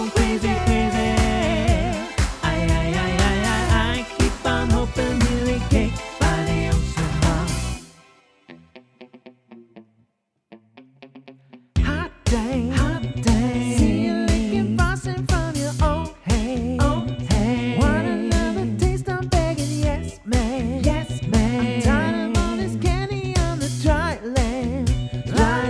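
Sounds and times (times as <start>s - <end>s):
vocal mix: 0.0s - 8.0s, 11.8s - 25.6s.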